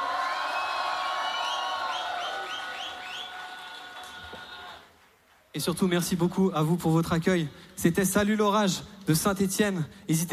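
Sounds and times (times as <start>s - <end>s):
festival crowd cheering: 0.0s - 5.2s
whistles: 1.2s - 3.5s
speech: 5.6s - 10.3s.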